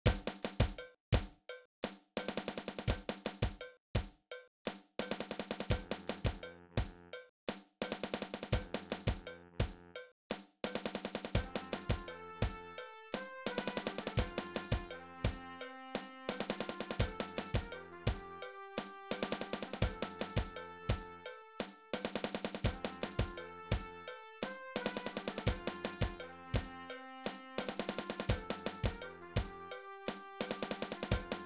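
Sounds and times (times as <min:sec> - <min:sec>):
lower percussion of a bridal march: 0:00.0 - 0:31.4.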